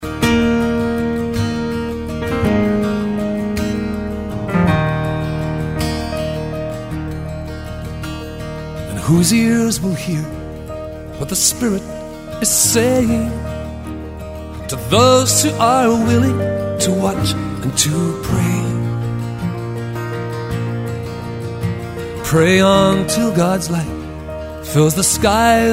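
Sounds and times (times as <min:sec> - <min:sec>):
piano: 0:00.0 - 0:25.7.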